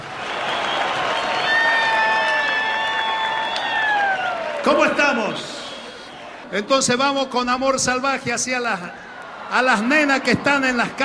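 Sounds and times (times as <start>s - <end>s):
audience applause: 0.0s - 6.4s, 9.1s - 11.0s
speech: 4.6s - 5.6s, 6.5s - 11.0s.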